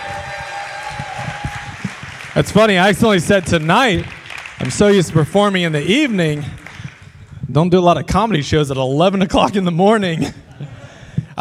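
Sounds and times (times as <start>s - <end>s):
crowd clapping and cheering: 0.0s - 7.5s
speech: 2.4s - 6.6s, 7.5s - 10.4s.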